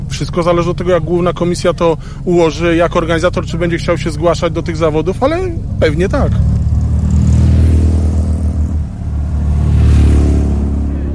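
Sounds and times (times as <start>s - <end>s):
speech: 0.2s - 6.5s
racing car engine revving on the Kielce race track in Poland: 2.6s - 11.1s.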